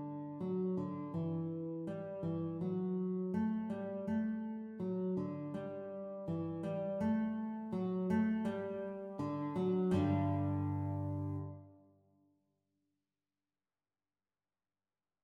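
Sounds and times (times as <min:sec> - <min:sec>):
guitar duet playalong at exam speed: 0:00.0 - 0:11.7.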